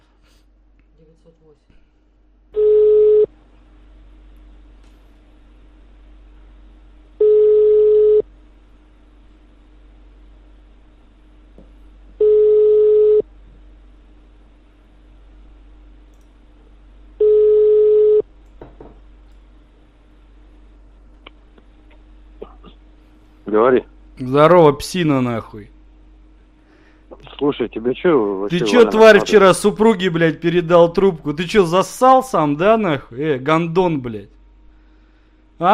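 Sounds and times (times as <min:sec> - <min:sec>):
speech: 0:01.0 - 0:02.1, 0:23.6 - 0:25.8, 0:27.4 - 0:34.4, 0:35.6 - 0:35.7
phone ringback tone: 0:02.6 - 0:03.3, 0:07.2 - 0:08.2, 0:12.2 - 0:13.2, 0:17.2 - 0:18.2.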